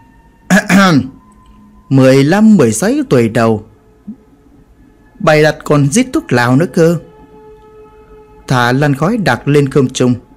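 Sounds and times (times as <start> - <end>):
faint steady hum: 0.0 - 10.3
person clearing throat stepping in through a door: 0.5 - 1.1
speech: 0.8 - 1.2, 1.9 - 3.7, 5.2 - 7.1, 8.5 - 10.3.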